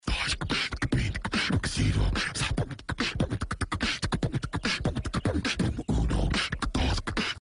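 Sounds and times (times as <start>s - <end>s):
beatbox: 0.0s - 7.3s.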